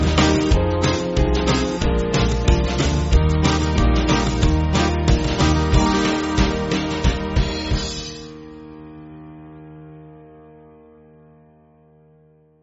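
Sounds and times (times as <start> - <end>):
band playing: 0.0 - 8.6.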